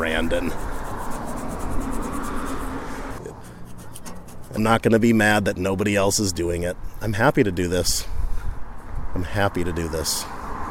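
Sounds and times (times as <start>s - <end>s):
speech: 0.0s - 0.7s, 4.5s - 8.1s, 9.2s - 10.4s
sticker being peeled off: 0.4s - 4.7s.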